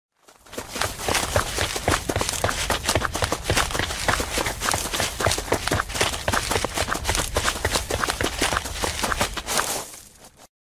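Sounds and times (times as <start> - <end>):
group running: 0.2 - 10.4.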